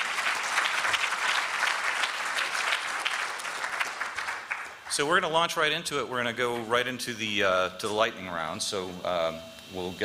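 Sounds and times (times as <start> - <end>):
audience applause: 0.0 - 5.4
speech: 4.9 - 10.0.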